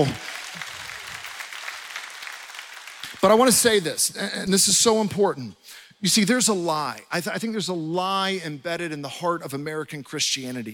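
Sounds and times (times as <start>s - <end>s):
speech: 0.0s - 0.2s, 3.2s - 10.7s
audience clapping: 0.0s - 4.1s.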